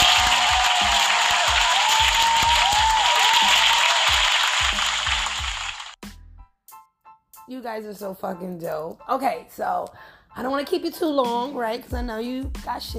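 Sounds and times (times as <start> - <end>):
applause: 0.0 - 6.0
speech: 7.6 - 12.9.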